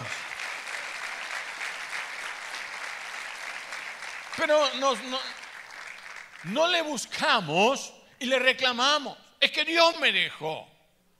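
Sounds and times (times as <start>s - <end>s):
audience applause: 0.0s - 6.6s
speech: 4.4s - 5.4s, 6.4s - 10.7s.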